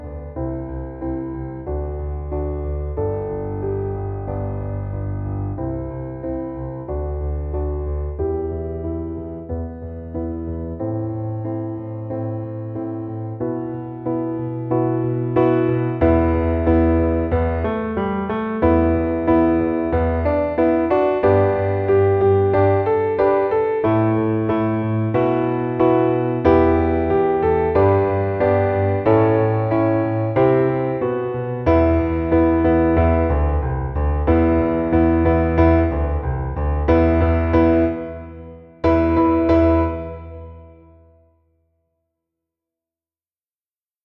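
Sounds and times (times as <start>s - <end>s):
piano accompaniment: 0.0s - 41.3s.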